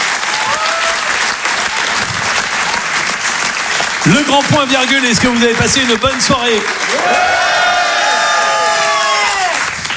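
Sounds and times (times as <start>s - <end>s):
live theatre audience at Le Grand Point Virgule cheering and whooping: 0.0s - 2.8s, 6.7s - 9.9s
live theatre audience at Le Grand Point Virgule applauding: 0.0s - 9.9s
speech: 4.1s - 7.6s
shouted voices over the clapping: 6.9s - 9.6s.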